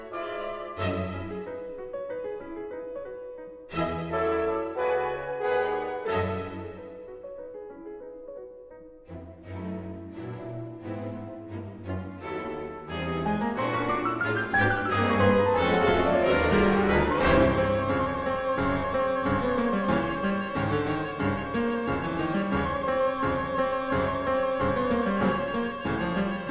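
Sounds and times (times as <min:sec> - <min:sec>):
piano and orchestra concertino: 0:00.0 - 0:26.4.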